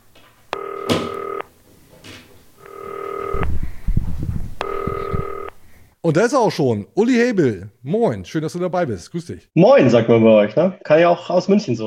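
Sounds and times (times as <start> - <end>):
telephone dialing: 0.5 - 1.5, 2.6 - 3.5, 4.6 - 5.6
speech: 6.1 - 11.8.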